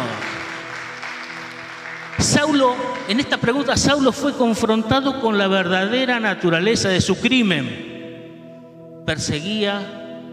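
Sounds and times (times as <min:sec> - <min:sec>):
audience applause: 0:00.0 - 0:03.2
speech: 0:02.2 - 0:07.9, 0:09.1 - 0:10.0.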